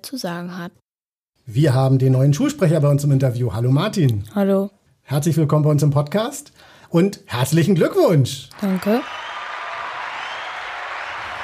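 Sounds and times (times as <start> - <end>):
speech: 0.0 - 0.8, 1.5 - 9.2
crowd applauding a newly elected school student representative: 8.5 - 11.4.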